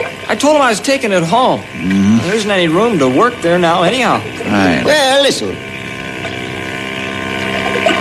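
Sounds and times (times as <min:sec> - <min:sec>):
motorboat engine droning: 0:00.0 - 0:07.9
speech: 0:00.4 - 0:05.7.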